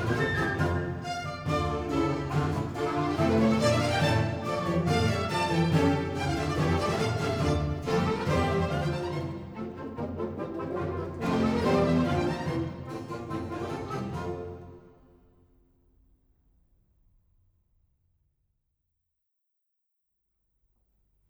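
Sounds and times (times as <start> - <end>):
instrumental piece: 0.0 - 15.0.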